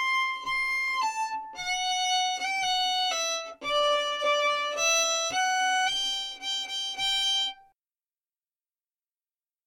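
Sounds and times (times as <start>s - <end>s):
slow folk tune: 0.0s - 7.7s.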